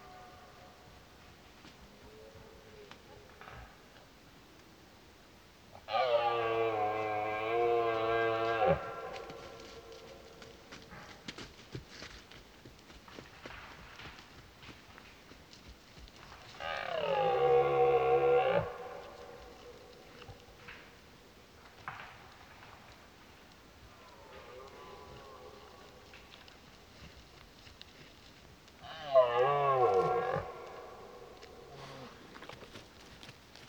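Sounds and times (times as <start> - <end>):
background hiss: 0.0 - 33.6
Red deer roaring: 5.9 - 10.1, 16.6 - 20.2, 28.8 - 32.3.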